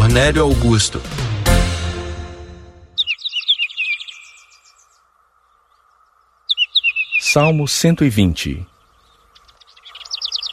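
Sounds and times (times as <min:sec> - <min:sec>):
sustained musical chord: 0:00.0 - 0:03.0
speech: 0:00.1 - 0:01.3, 0:07.3 - 0:08.7
small bird twittering: 0:03.0 - 0:07.7, 0:08.6 - 0:10.5.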